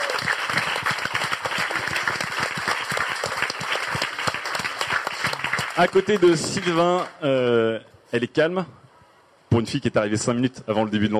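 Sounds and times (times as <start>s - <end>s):
audience applause: 0.0s - 7.2s
speech: 5.8s - 8.8s, 9.6s - 11.1s.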